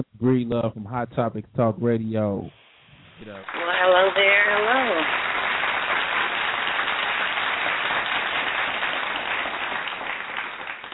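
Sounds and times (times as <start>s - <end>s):
speech: 0.0s - 2.6s, 3.2s - 5.3s
applause: 3.4s - 10.9s.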